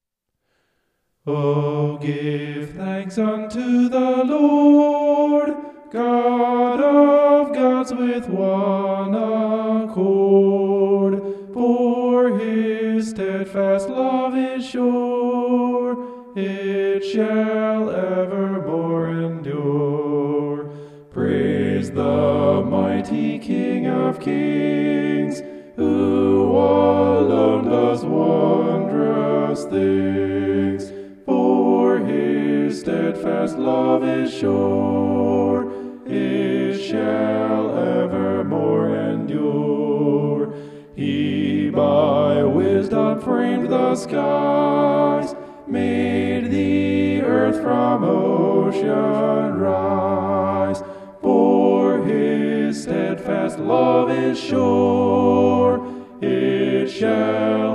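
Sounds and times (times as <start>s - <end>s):
homophonic vocals: 1.3s - 57.7s.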